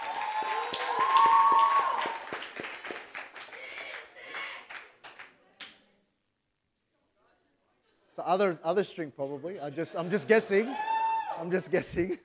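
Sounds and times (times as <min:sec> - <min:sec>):
crowd cheering and clapping: 0:00.0 - 0:05.4, 0:10.2 - 0:11.5
speech: 0:08.3 - 0:12.2.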